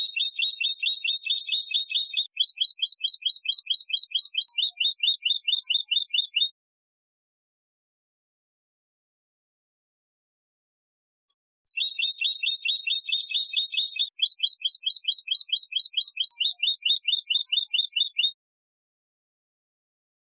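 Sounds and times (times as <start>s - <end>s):
European goldfinch Carduelis carduelis rapid bright chirps: 0.0s - 6.5s, 11.7s - 18.4s.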